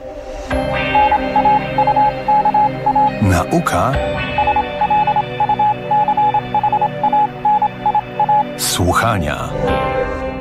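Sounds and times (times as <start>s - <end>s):
Morse code beeps tapping out a programme signal: 0.9s - 3.5s, 4.3s - 8.5s
speech: 3.4s - 4.3s, 8.8s - 10.0s.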